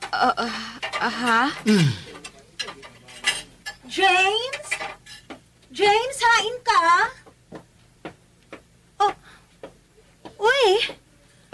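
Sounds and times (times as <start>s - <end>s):
speech: 0.1s - 2.0s, 3.9s - 4.6s, 5.7s - 7.2s
dishes and cutlery clinking as food is served onto a plate: 0.8s - 5.4s.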